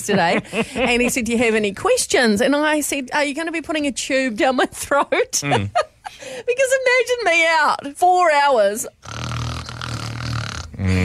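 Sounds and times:
speech: 0.0 - 9.2
loud rough snoring snort from someone asleep: 9.0 - 11.0.

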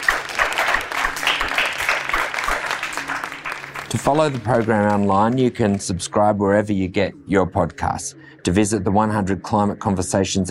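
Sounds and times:
audience applause: 0.0 - 5.9
speech: 3.9 - 10.5.

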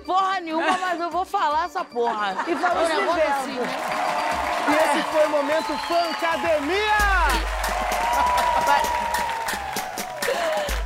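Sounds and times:
speech: 0.1 - 7.5, 8.2 - 9.0
laughter: 2.0 - 3.8, 4.5 - 5.6, 10.0 - 10.8
crowd clapping: 2.8 - 10.8.

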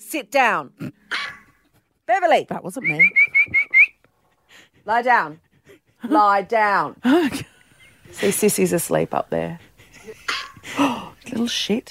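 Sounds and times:
speech: 0.1 - 1.2, 2.1 - 3.6, 4.8 - 5.4, 6.0 - 7.5, 8.1 - 11.8
person whistling into phone: 2.8 - 4.0.

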